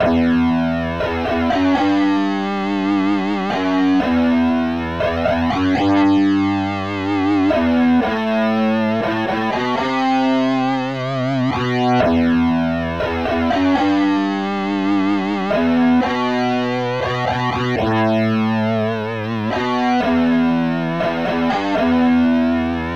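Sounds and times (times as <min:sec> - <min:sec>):
overdrive distortion: 0:00.0 - 0:22.9.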